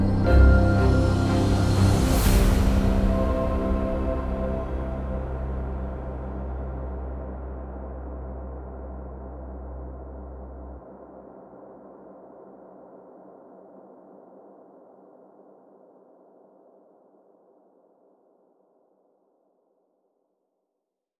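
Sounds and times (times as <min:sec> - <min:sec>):
percussive underscore music: 0:00.0 - 0:06.4.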